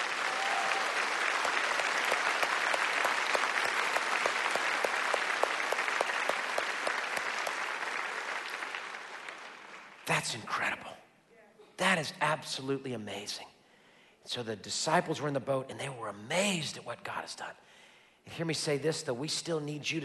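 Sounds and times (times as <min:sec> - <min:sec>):
audience applauding: 0:00.0 - 0:10.2
speech: 0:10.2 - 0:11.0, 0:11.8 - 0:13.5, 0:14.3 - 0:20.0.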